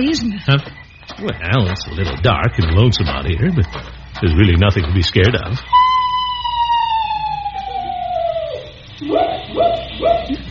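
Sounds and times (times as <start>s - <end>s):
speech: 0.0s - 5.8s, 9.0s - 10.4s
screech owl call: 5.6s - 10.4s.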